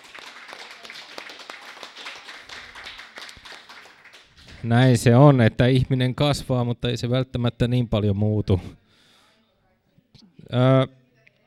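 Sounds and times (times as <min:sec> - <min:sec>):
audience applause: 0:00.0 - 0:04.8
speech: 0:04.6 - 0:08.8, 0:10.5 - 0:11.0.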